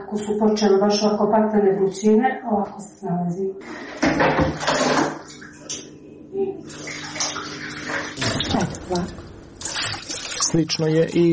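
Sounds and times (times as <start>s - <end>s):
speech: 0.1s - 9.2s, 10.4s - 11.3s
water poured from a container into a washing machine drum: 4.0s - 5.7s, 6.6s - 11.3s.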